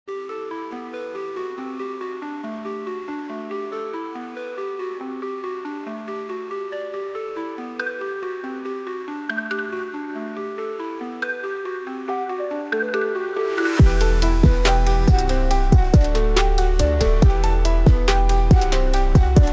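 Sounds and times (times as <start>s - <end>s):
trap beat: 13.6s - 19.5s.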